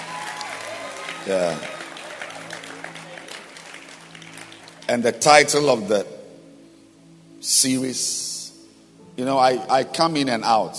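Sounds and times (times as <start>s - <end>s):
audience clapping hands: 0.0s - 5.3s
speech: 1.2s - 1.8s, 4.9s - 6.1s, 7.4s - 8.2s, 9.2s - 10.7s.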